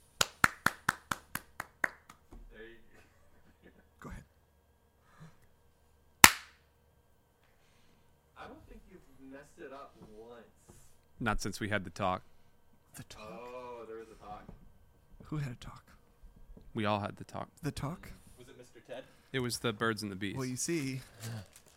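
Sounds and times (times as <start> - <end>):
sharp hand claps: 0.2 - 2.3, 6.2 - 6.6
loud single crack: 6.2 - 6.6
speech: 11.2 - 12.3, 13.0 - 13.4, 15.2 - 15.9, 16.8 - 18.2, 18.8 - 21.6.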